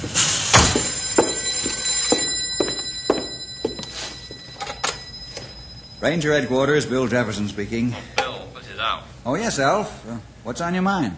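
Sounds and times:
telephone buzzing: 0:00.6 - 0:06.9
speech: 0:06.0 - 0:08.2, 0:08.9 - 0:11.1.

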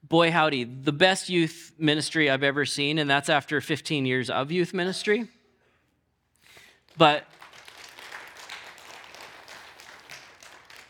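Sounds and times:
speech: 0:00.1 - 0:05.4, 0:07.0 - 0:07.4
church congregation clapping during a sermon: 0:06.6 - 0:10.8.

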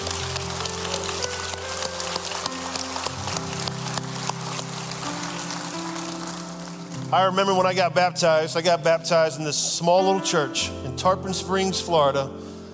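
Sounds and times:
audience applause: 0:00.0 - 0:07.2
speech: 0:07.1 - 0:12.5.

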